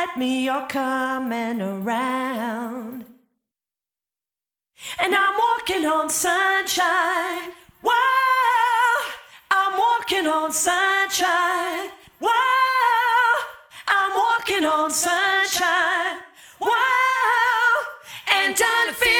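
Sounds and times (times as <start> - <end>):
person singing: 0.0 - 3.1, 4.9 - 19.1.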